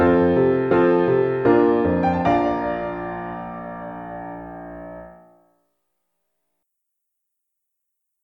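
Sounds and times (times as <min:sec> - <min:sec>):
allemande accompaniment for elementary solos: 0:00.1 - 0:05.3.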